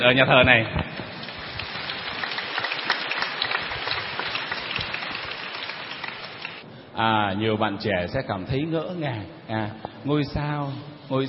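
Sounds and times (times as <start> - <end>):
speech: 0.0 - 0.8, 7.0 - 11.2
audience applauding: 1.0 - 6.6.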